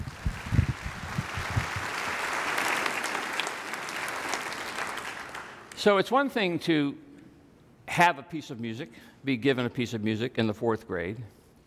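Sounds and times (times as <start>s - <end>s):
audience round of applause: 0.0s - 5.8s
speech: 5.8s - 7.0s, 7.9s - 11.4s.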